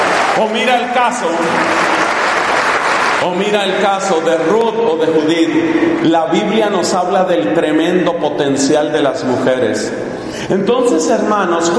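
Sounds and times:
audience applause: 0:00.0 - 0:04.0
speech: 0:00.4 - 0:01.9, 0:03.2 - 0:11.7.

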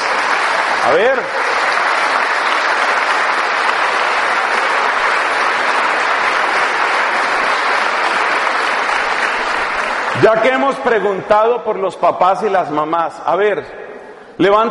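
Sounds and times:
audience applause: 0:00.0 - 0:11.0
speech: 0:00.8 - 0:01.5, 0:10.2 - 0:13.8, 0:14.4 - 0:14.7.

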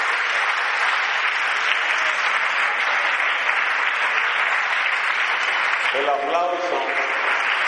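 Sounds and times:
audience applause: 0:00.0 - 0:07.6.

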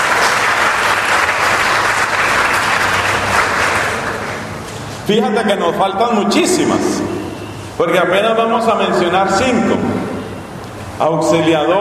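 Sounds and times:
audience applause: 0:00.0 - 0:04.7
speech: 0:05.1 - 0:07.1, 0:07.8 - 0:10.0, 0:11.0 - 0:11.7.

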